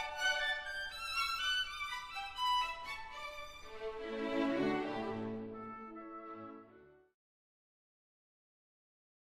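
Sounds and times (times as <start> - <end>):
violin concerto: 0.0 - 7.1.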